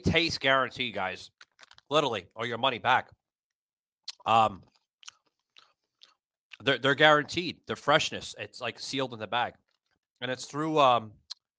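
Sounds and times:
speech: 0.1s - 3.2s, 4.2s - 4.7s, 6.6s - 9.6s, 10.2s - 11.2s
chewing Nut Harvest deluxe mixed nuts: 1.3s - 2.0s, 4.1s - 6.6s.

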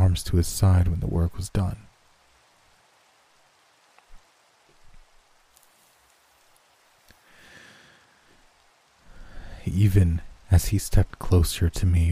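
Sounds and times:
rain falling: 0.0s - 12.1s
speech: 0.2s - 1.8s, 9.7s - 12.1s.

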